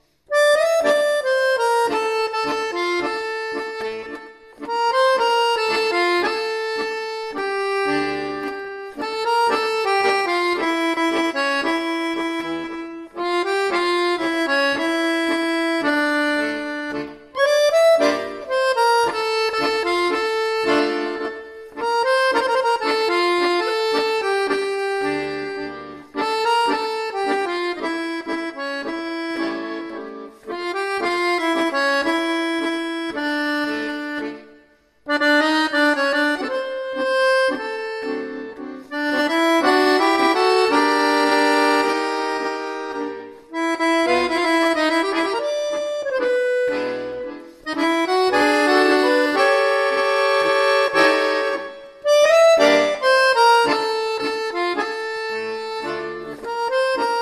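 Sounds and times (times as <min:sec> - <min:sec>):
tango music: 0:00.0 - 0:57.2.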